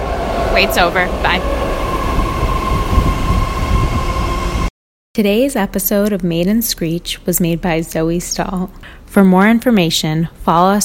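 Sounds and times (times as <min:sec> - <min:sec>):
train rolling into a station: 0:00.0 - 0:04.7
speech: 0:00.6 - 0:01.6, 0:05.2 - 0:10.8.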